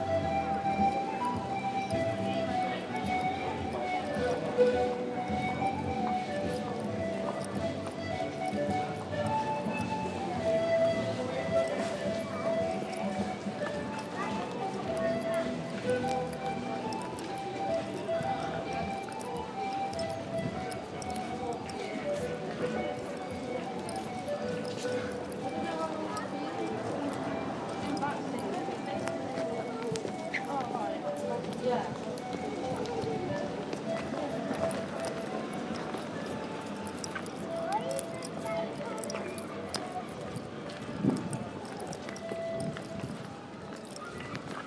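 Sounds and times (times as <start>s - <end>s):
panpipe player playing: 0.0s - 40.6s, 41.2s - 43.8s
jewellery jingling: 12.5s - 29.7s, 34.3s - 44.6s.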